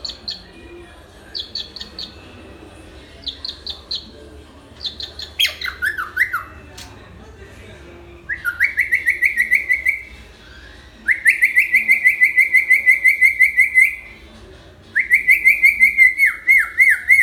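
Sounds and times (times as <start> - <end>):
hill myna song with trills: 0.0 - 0.6, 1.3 - 2.3, 3.2 - 4.2, 4.8 - 6.9, 8.3 - 14.2, 15.0 - 17.2.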